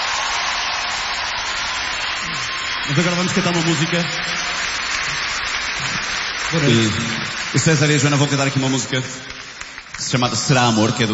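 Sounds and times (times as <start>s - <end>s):
audience applause welcoming a performer on stage: 0.0s - 11.1s
speech: 2.9s - 4.6s, 6.5s - 9.3s, 10.1s - 11.1s.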